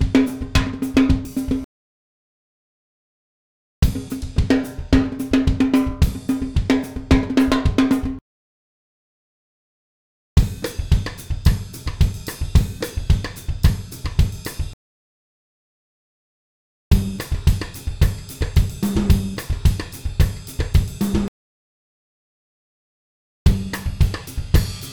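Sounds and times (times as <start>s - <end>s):
Latin drumbeat loop: 0.0s - 1.7s, 3.8s - 8.2s, 10.4s - 14.8s, 16.9s - 21.3s, 23.5s - 24.9s.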